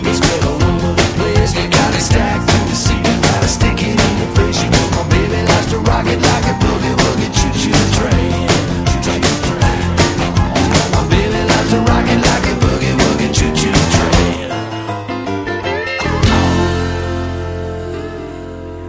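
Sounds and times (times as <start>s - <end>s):
boogie woogie music: 0.0s - 18.8s.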